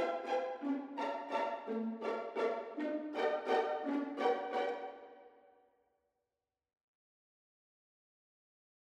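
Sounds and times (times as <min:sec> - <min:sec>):
strings: 0:00.0 - 0:05.4.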